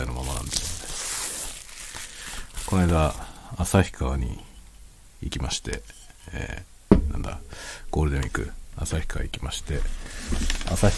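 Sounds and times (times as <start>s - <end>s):
bubble wrap being unwrapped from a bottle: 0.0s - 3.3s
speech: 2.7s - 4.5s, 5.2s - 10.9s.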